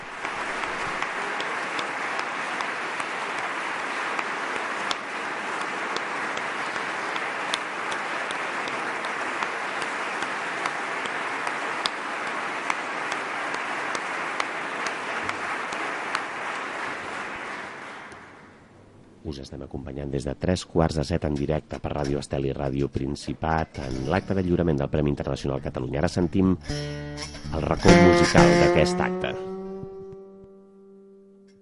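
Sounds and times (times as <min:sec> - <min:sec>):
long applause from a large crowd in a hall: 0:00.0 - 0:18.6
speech: 0:19.3 - 0:29.5.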